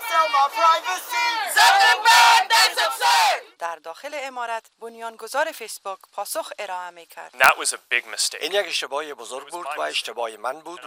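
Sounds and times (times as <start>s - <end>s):
protesters chanting outside Congress building: 0.0s - 3.5s
speech: 0.2s - 10.8s.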